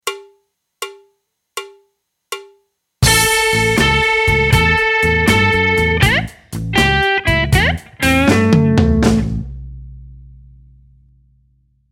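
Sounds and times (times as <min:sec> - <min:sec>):
blues music: 0:03.0 - 0:09.7.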